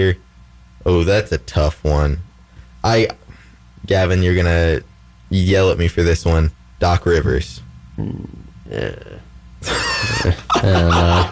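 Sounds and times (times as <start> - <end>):
speech: 0.8 - 3.2, 3.8 - 11.3
person growling: 7.6 - 9.3
quiet breathy vocal noises: 7.6 - 9.4
laughter: 9.6 - 11.3.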